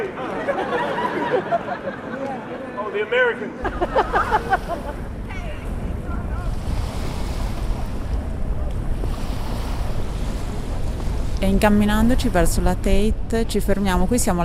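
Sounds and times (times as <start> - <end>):
laughter: 0.0 - 6.6
speech: 2.9 - 5.0, 11.4 - 14.4
gusty wind: 3.6 - 14.4
waves lapping on a small beach of the River Thames in London: 3.6 - 14.4.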